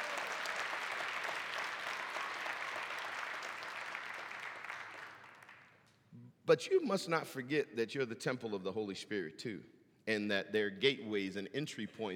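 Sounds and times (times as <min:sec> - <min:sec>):
audience applauding: 0:00.0 - 0:05.7
speech: 0:06.5 - 0:12.1.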